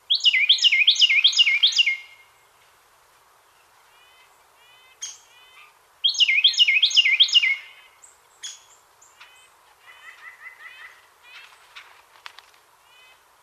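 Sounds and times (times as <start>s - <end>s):
Carolina Wren Thryothorus ludovicianus: 0.1s - 2.2s, 6.0s - 10.9s.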